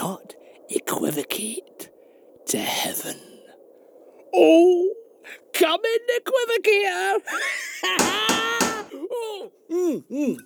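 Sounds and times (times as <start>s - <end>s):
speech: 0.2s - 1.8s, 2.5s - 3.3s, 4.3s - 10.4s
laughter: 7.3s - 9.4s
knocking on a door: 8.0s - 8.9s.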